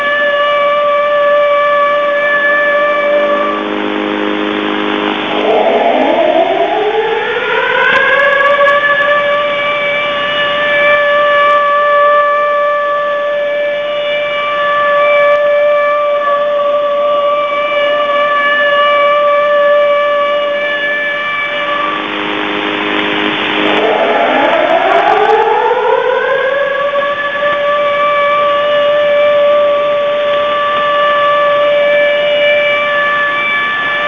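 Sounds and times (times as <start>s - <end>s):
air raid siren signal on 6911 kHz shortwave: 0.0s - 34.0s.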